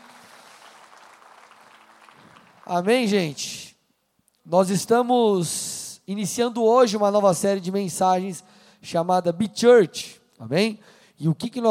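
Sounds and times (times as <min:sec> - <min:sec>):
audience applause: 0:00.0 - 0:02.9
speech: 0:02.7 - 0:03.6, 0:04.5 - 0:11.6.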